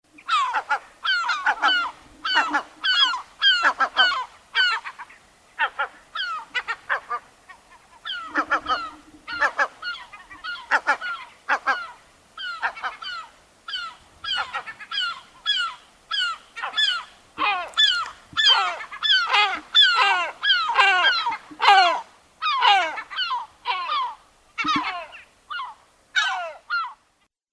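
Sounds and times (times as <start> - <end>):
seagull calling: 0.2 - 27.0.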